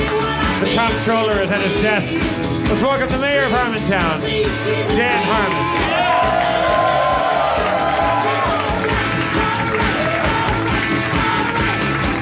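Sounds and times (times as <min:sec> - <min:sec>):
speech: 0:00.6 - 0:06.6
live audience cheering and applauding: 0:04.4 - 0:12.2
whoops and shouts: 0:04.9 - 0:08.7.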